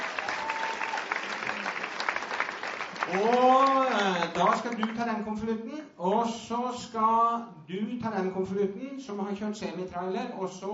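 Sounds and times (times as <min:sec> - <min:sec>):
audience clapping: 0:00.0 - 0:05.1
speech: 0:03.1 - 0:03.6, 0:04.4 - 0:10.7.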